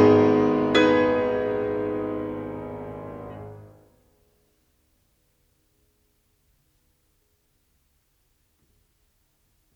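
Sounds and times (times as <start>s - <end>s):
classical piano piece: 0.0s - 3.9s.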